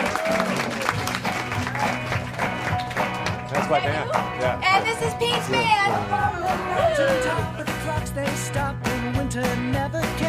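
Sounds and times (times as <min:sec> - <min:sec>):
audience applause: 0:00.0 - 0:07.3
speech: 0:03.7 - 0:10.2.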